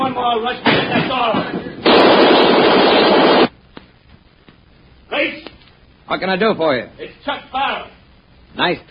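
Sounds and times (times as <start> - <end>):
speech: 0.2 - 1.4, 6.1 - 7.9, 8.6 - 8.8
Tommy gun machine gun fire: 1.8 - 3.5.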